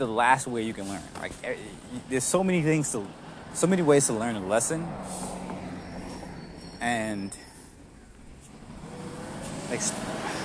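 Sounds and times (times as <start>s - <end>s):
speech: 0.0s - 5.4s, 6.8s - 7.4s, 9.7s - 10.0s
truck driving past outside: 2.8s - 10.4s.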